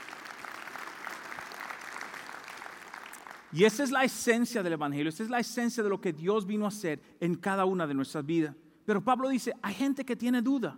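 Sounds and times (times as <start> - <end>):
audience applause: 0.0 - 3.6
speech: 3.5 - 10.7.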